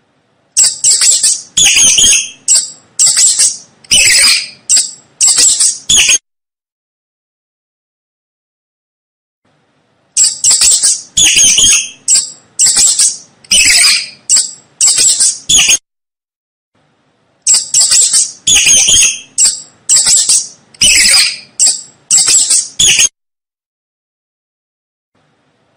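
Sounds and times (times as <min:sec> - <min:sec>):
mouse squeaking: 0:00.6 - 0:06.2, 0:10.2 - 0:15.8, 0:17.5 - 0:23.1.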